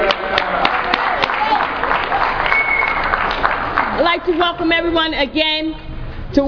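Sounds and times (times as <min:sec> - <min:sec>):
convention audience applause: 0:00.0 - 0:04.4
speech: 0:04.2 - 0:06.4.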